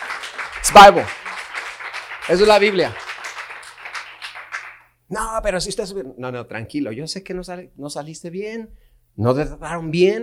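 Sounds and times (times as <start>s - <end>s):
audience clapping: 0.0s - 4.9s
speech: 0.6s - 1.2s, 2.3s - 3.0s, 5.1s - 10.2s.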